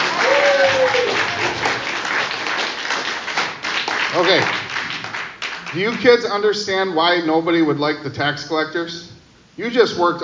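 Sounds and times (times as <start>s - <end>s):
children's audience applauding: 0.0s - 5.8s
speech: 4.2s - 4.6s, 5.7s - 10.2s.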